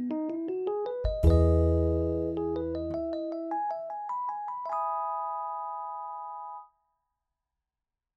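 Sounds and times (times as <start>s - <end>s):
mellow jazz-style music: 0.0s - 4.3s.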